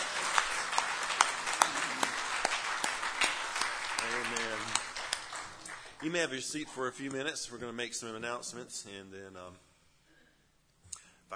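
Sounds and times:
audience applause: 0.0 - 6.8
speech: 6.0 - 9.7.

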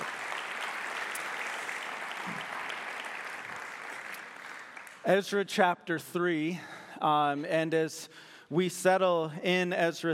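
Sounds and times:
church congregation applauding to welcome a guest: 0.0 - 5.4
speech: 5.0 - 10.1.

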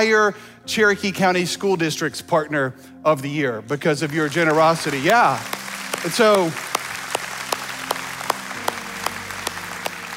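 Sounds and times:
speech: 0.0 - 6.7
audience clapping in a church setting: 4.0 - 10.1.

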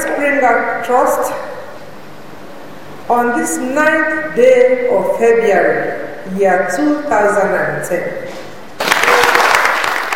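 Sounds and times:
speech: 0.2 - 1.5, 3.1 - 8.4
crowd clapping: 8.8 - 10.1.

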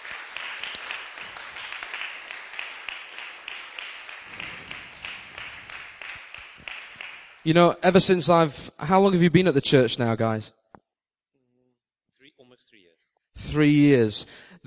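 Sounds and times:
audience round of applause: 0.0 - 7.5
speech: 7.4 - 10.6, 13.5 - 14.6.

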